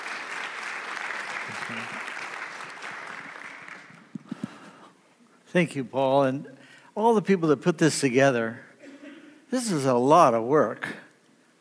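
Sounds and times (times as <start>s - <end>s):
audience applause welcoming a speaker at a talk: 0.0s - 4.2s
speech: 1.7s - 2.1s, 5.5s - 8.7s, 9.5s - 11.0s.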